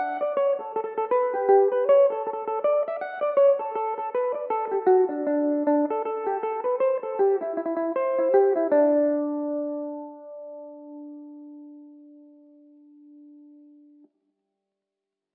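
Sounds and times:
Irish mandolin playing a reel in D mixolydian: 0:00.0 - 0:10.3.

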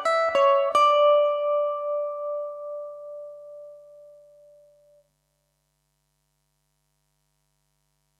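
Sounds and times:
Irish mandolin playing in D major: 0:00.0 - 0:05.0.

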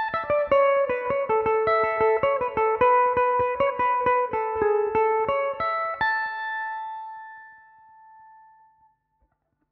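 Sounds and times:
Irish mandolin in A major: 0:00.0 - 0:07.7.

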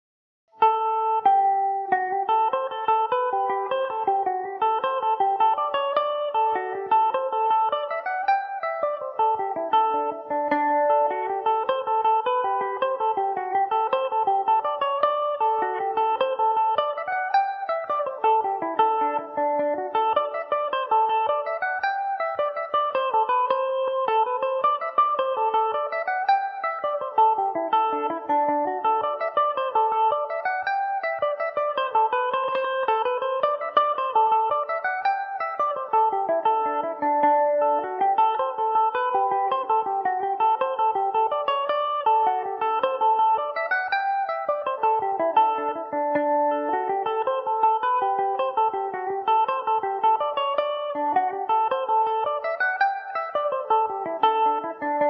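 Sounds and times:
Irish mandolin in D mixolydian: 0:00.6 - 0:55.0.

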